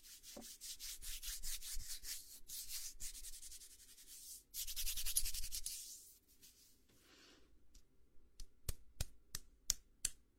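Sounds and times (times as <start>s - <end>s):
hands rubbing during head and shoulder massage: 0.1s - 6.8s.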